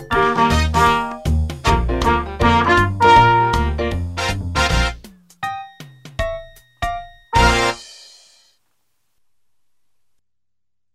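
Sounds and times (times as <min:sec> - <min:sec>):
blues music: 0:00.0 - 0:08.0.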